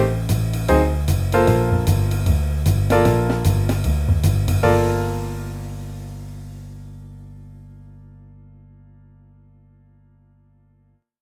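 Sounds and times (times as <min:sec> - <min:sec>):
etude full accompaniment: 0:00.0 - 0:07.8.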